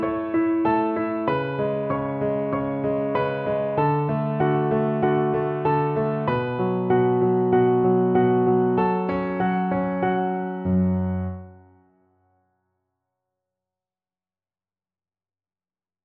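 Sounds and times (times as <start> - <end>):
piano accompaniment: 0.0 - 11.8.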